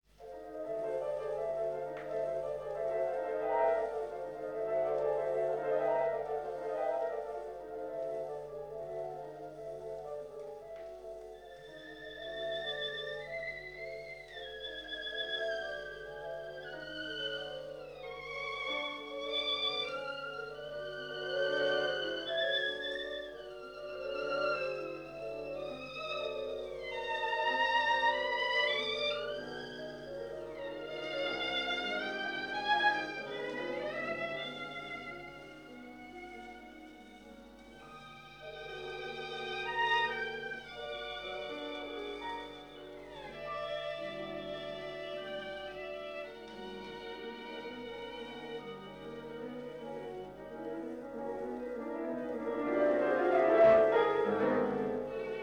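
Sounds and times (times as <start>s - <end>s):
violin and piano piece: 0.1s - 55.4s.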